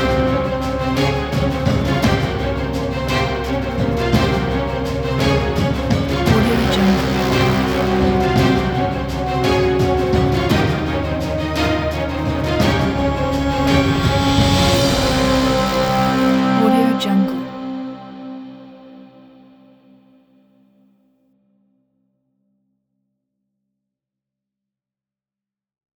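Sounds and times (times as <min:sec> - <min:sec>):
action cinematic trailer music: 0:00.0 - 0:19.4.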